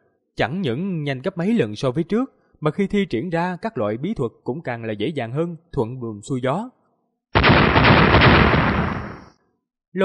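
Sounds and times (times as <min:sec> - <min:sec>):
speech: 0:00.4 - 0:06.8
thunderous explosion sound effect: 0:07.4 - 0:09.3.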